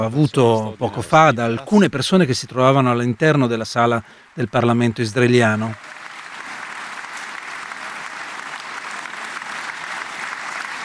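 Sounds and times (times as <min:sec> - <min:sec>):
speech: 0:00.0 - 0:05.9
applause from a large audience in a parliament hall: 0:05.5 - 0:10.8.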